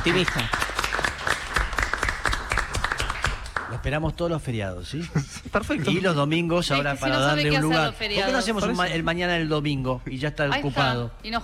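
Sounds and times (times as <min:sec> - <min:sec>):
speech: 0:00.0 - 0:00.6, 0:03.7 - 0:11.4
audience applause: 0:00.0 - 0:03.8
laughter: 0:04.9 - 0:06.3.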